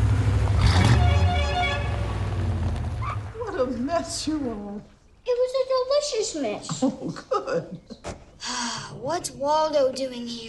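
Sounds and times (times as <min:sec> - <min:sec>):
bright yellow Hummer pulling up outside the bakery: 0:00.0 - 0:04.6
Hummer honking: 0:00.6 - 0:03.3
speech: 0:03.9 - 0:05.4, 0:06.0 - 0:10.4.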